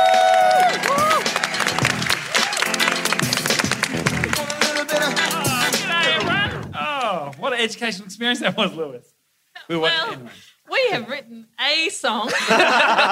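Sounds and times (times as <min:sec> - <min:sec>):
audience applause: 0:00.0 - 0:07.1
speech: 0:07.6 - 0:13.1
laughter: 0:12.2 - 0:13.1.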